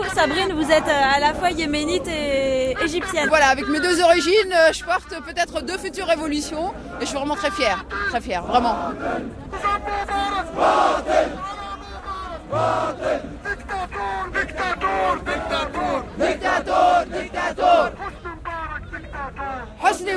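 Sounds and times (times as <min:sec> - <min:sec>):
speech: 0:00.2 - 0:11.4, 0:12.5 - 0:13.3
large jubilant crowd chanting and cheering: 0:07.8 - 0:18.3.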